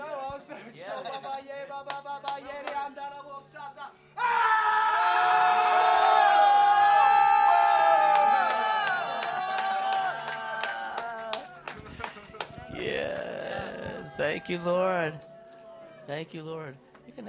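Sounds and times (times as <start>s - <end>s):
congregation roaring together: 4.2s - 11.7s, 12.8s - 16.1s
scattered shouts and whoops: 4.2s - 11.7s, 12.6s - 16.0s
crowd murmuring: 11.3s - 16.1s
speech: 14.4s - 15.3s, 16.1s - 17.2s.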